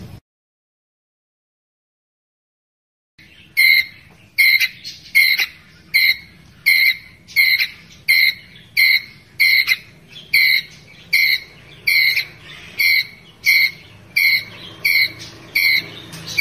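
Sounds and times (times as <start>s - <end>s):
ground squirrel chirping: 3.2s - 16.3s.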